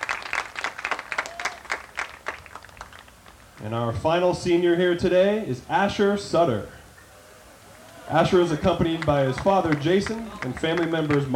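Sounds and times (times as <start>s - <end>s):
audience applause: 0.0s - 3.4s, 7.8s - 11.3s
speech: 3.6s - 6.8s, 8.1s - 11.3s.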